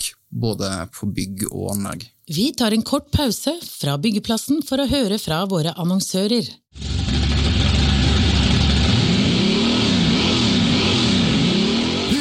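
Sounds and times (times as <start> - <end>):
speech: 0.3 - 7.0
1957 Chevy 350 V8 engine revving: 6.8 - 12.2.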